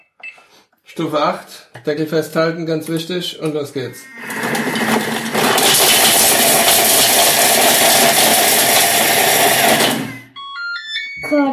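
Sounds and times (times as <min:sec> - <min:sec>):
speech: 0:01.0 - 0:04.4, 0:11.3 - 0:11.5
kitchen mixer chopping chocolate pralines: 0:04.1 - 0:10.2
high electronic beeps: 0:10.1 - 0:11.5.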